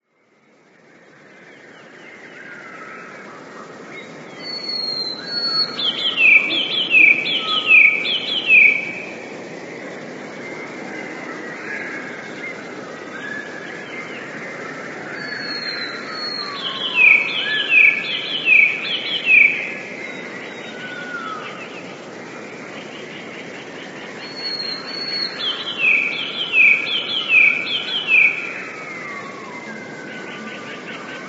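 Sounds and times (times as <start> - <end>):
background hiss: 0.0 - 31.2
Eurasian blue tit singing: 4.4 - 9.2, 15.2 - 20.7, 24.0 - 28.8.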